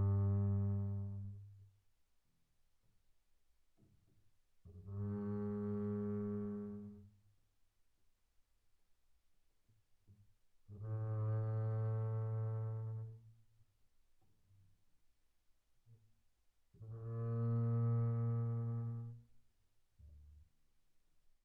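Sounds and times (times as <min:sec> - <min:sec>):
double bass bowed arco on the E string, pianissimo: 0:00.0 - 0:01.6, 0:04.7 - 0:07.2, 0:10.1 - 0:13.4, 0:16.8 - 0:19.4, 0:20.0 - 0:20.5.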